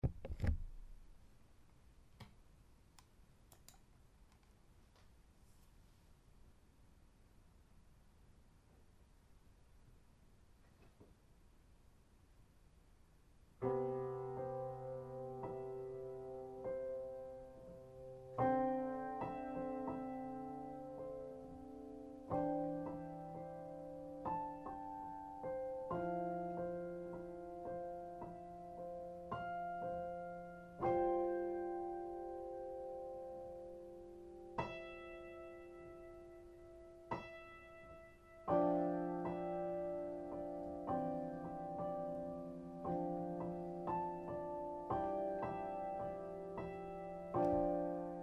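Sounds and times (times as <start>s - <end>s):
piano: 13.6s - 48.2s.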